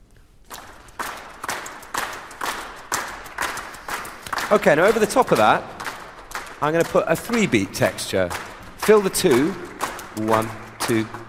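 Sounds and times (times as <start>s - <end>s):
orchestra strings clapping in 6/8: 0.4s - 11.2s
speech: 4.5s - 5.7s, 6.6s - 11.2s.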